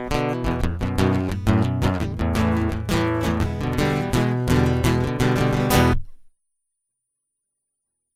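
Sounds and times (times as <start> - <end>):
guitar loop: 0.0 - 6.3.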